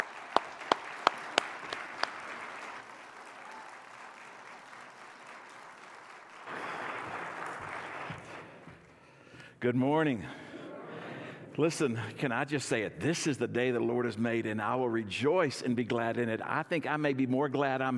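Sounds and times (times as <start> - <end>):
church congregation applauding to welcome a guest pastor: 0.0 - 9.0
speech: 9.6 - 10.4, 11.6 - 17.9.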